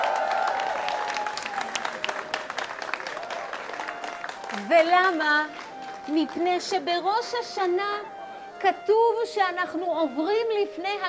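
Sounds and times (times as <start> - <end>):
audience clapping hands: 0.0 - 6.6
speech: 4.7 - 11.0.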